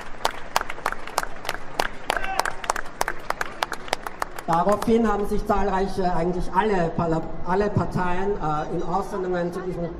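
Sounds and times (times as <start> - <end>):
applause at a 2015 rally against Al-Quds Day in Vienna: 0.0 - 5.4
speech: 4.5 - 9.9.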